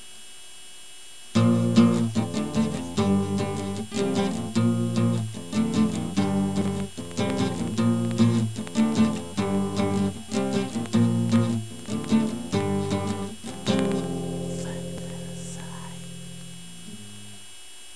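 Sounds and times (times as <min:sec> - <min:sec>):
guitar playing: 0:01.4 - 0:17.4.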